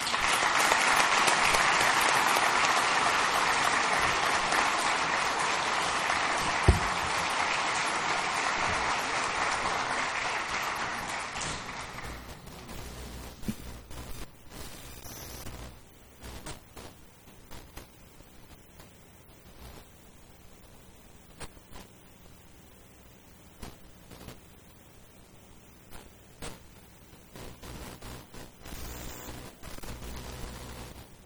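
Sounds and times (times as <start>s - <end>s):
crowd applause: 0.0s - 12.3s.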